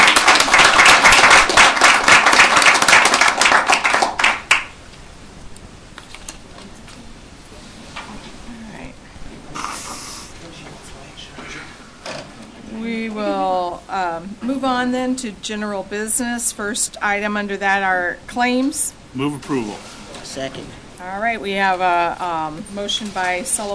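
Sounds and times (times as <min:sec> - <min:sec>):
round of applause: 0:00.0 - 0:04.7
speech: 0:14.8 - 0:23.7.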